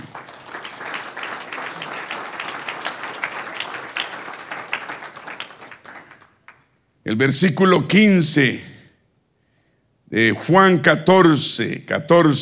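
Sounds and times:
applause: 0.0 - 6.7
speech: 7.1 - 8.7, 10.1 - 12.4.

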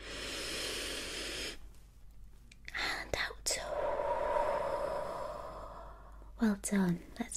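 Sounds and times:
deep breath in: 0.0 - 1.6, 3.6 - 6.3
speech: 6.4 - 7.3.

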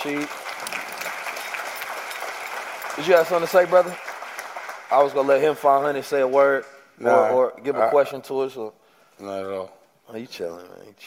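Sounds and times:
speech: 0.0 - 0.4, 3.0 - 4.1, 4.9 - 11.0
audience applause: 0.0 - 6.4.

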